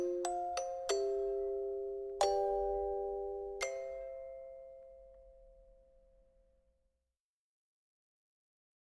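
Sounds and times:
music box melody: 0.0s - 6.0s.

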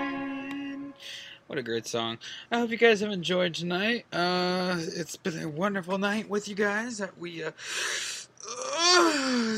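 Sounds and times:
speech: 1.5s - 9.5s
person yawning while stretching: 8.4s - 9.5s.

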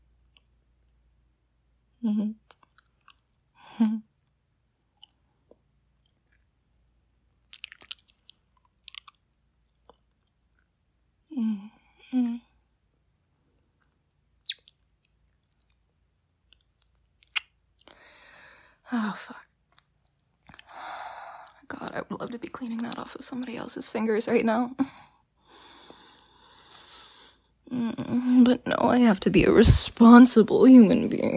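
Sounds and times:
speech: 2.0s - 2.5s, 3.8s - 4.0s, 22.2s - 25.0s, 27.8s - 31.3s
person chewing and biting while tasting food: 2.5s - 3.5s, 4.2s - 6.6s, 7.4s - 10.8s, 13.6s - 18.0s, 19.7s - 20.7s.

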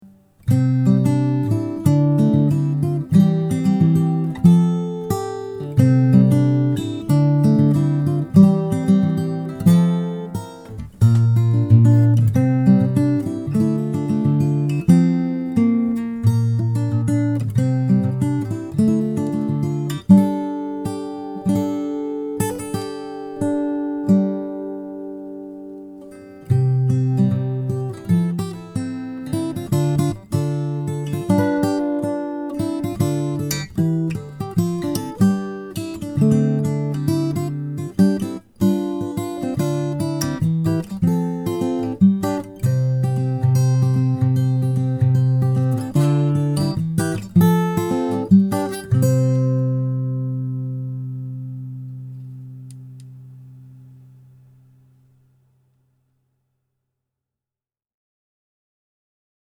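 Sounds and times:
acoustic instrumental music: 0.0s - 56.0s.

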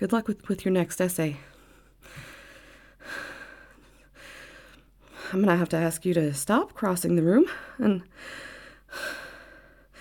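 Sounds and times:
speech: 0.0s - 2.3s, 5.3s - 9.2s
heavy breathing: 1.4s - 5.4s, 7.5s - 9.9s.

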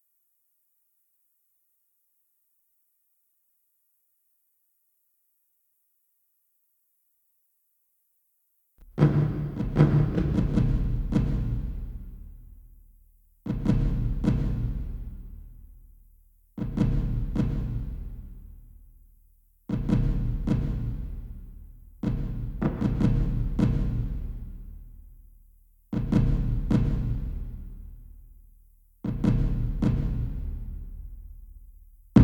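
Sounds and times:
different drums: 8.8s - 32.2s.

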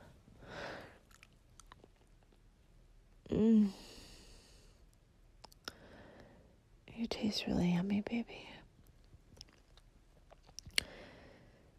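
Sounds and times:
wet chewing of gum: 0.9s - 2.5s, 8.8s - 11.0s
speech: 3.3s - 3.8s, 7.1s - 8.6s.

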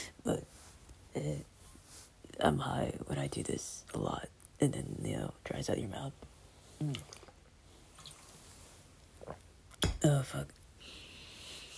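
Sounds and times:
speech: 0.2s - 0.5s, 1.2s - 1.5s, 2.4s - 7.2s, 10.0s - 10.6s
person drinking water: 6.8s - 8.4s, 9.0s - 9.8s.

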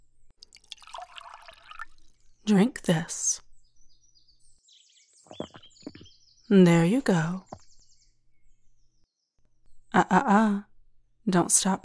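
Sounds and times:
water trickling onto a seedling: 0.4s - 2.4s
speech: 2.5s - 3.4s, 6.5s - 7.5s, 10.0s - 10.7s, 11.3s - 11.8s.

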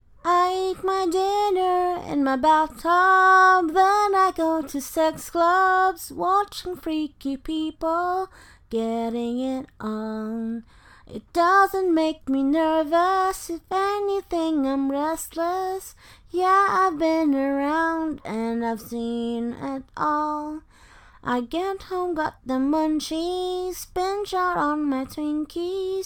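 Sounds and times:
a cappella cover singing, rainy night version: 0.2s - 26.0s.

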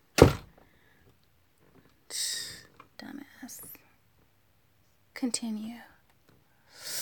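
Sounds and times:
door banging shut with a heavy booming thud: 0.1s - 0.6s
speech: 5.2s - 5.9s.

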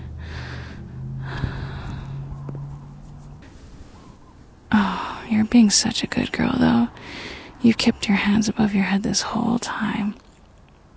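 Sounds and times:
soft breathing: 0.0s - 5.5s, 6.9s - 7.6s
speech: 5.3s - 10.2s.

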